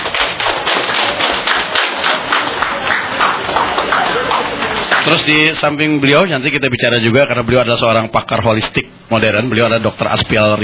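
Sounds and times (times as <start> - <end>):
audience applause: 0.0 - 5.4
speech: 5.0 - 10.6.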